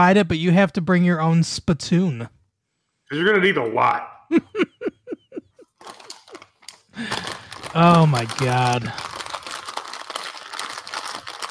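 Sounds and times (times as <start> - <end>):
speech: 0.0 - 2.4, 3.1 - 4.7, 7.0 - 9.1
laughter: 4.3 - 5.7
snack bag crinkling: 5.6 - 11.4.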